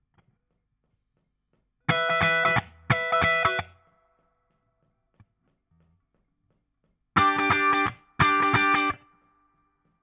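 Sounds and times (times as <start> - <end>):
guitar solo: 1.9 - 3.8, 7.2 - 9.1.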